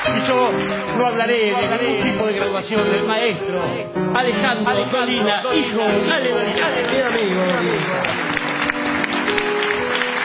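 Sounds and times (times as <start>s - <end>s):
audience applause: 0.0s - 1.0s, 6.4s - 10.2s
speech: 0.1s - 8.4s, 9.3s - 10.0s.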